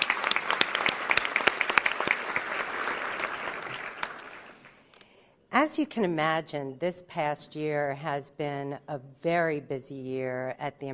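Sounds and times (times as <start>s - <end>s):
audience applause: 0.0s - 4.7s
speech: 5.6s - 10.9s.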